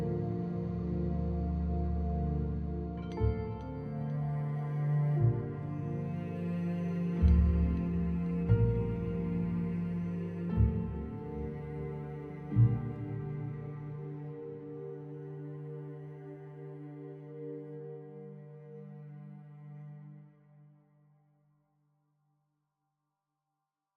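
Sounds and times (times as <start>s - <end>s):
bittersweet waltz: 0.0s - 18.9s.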